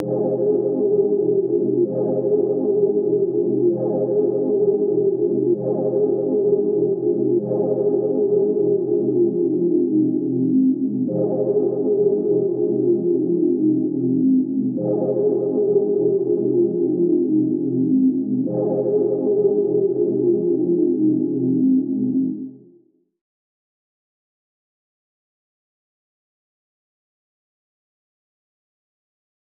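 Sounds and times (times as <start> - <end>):
synth pad: 0.0 - 22.6.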